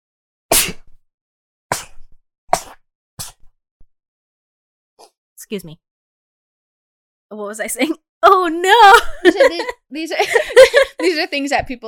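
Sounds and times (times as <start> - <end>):
sneezes: 0.5 - 1.0, 1.7 - 3.5
speech: 5.4 - 5.9, 7.3 - 11.8
laughter: 9.0 - 11.3.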